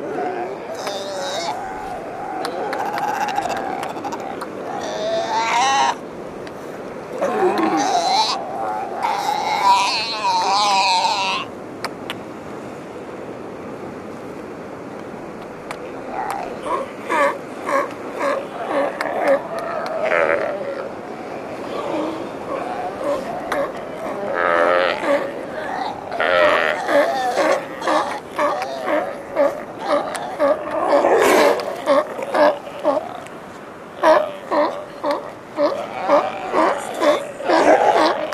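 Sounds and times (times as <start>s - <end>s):
sea lion pups and adults calling on Santiago Island: 0.0s - 6.2s, 7.1s - 11.6s, 15.6s - 38.3s
steady wash of surf: 0.0s - 38.3s.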